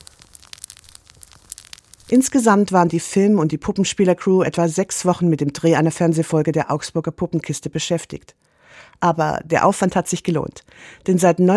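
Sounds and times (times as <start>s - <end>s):
foil-filled squeeze ball crackling as fire effect: 0.0s - 3.0s
speech: 2.1s - 11.5s.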